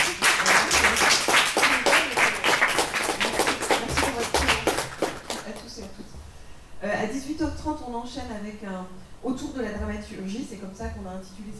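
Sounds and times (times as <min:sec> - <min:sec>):
audience applause: 0:00.0 - 0:06.0
speech: 0:07.9 - 0:11.5.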